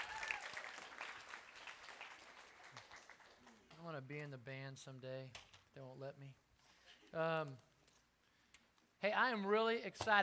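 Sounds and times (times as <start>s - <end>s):
audience applauding the band: 0.0s - 3.8s
speech: 3.8s - 6.4s, 7.1s - 7.7s, 9.0s - 10.2s.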